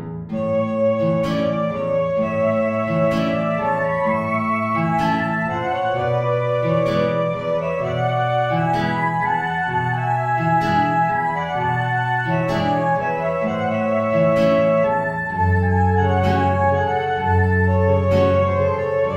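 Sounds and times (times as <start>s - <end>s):
tango music: 0.4s - 19.1s.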